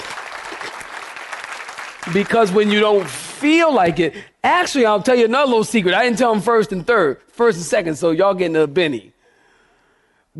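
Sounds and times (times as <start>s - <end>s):
audience clapping hands: 0.0s - 3.8s
speech: 2.0s - 9.2s.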